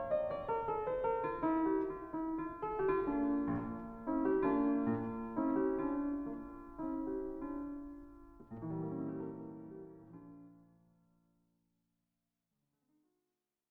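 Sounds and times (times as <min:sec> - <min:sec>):
sonata in E flat major andante: 0:00.0 - 0:10.4.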